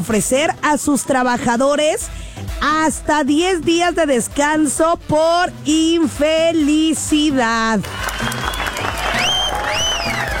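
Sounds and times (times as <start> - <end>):
speech: 0.0 - 8.4
crowd clapping: 7.8 - 10.3
whistle-like tones: 8.2 - 10.3.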